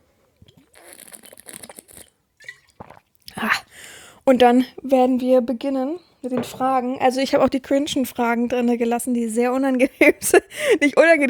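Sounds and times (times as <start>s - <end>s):
person sipping a drink: 0.3s - 4.2s
speech: 4.3s - 11.2s.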